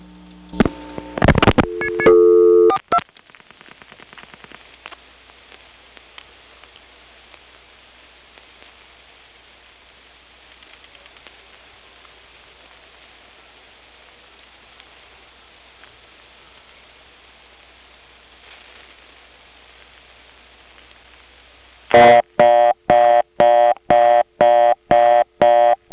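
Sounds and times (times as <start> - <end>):
telephone reorder tone from a touchtone converter: 1.2 - 3.0, 21.9 - 25.9
faint hiss on telephone line: 3.0 - 25.9
touchtone dialing bursts: 21.9 - 25.9.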